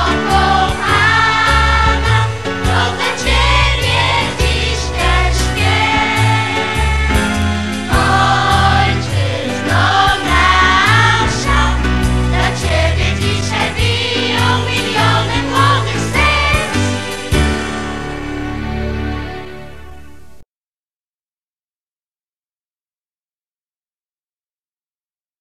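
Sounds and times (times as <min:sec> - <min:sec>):
school pop music: 0:00.0 - 0:19.9.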